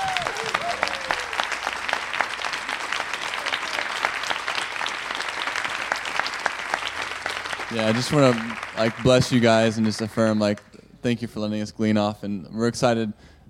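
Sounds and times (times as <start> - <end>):
audience applause: 0.0 - 10.6
speech: 7.7 - 13.3.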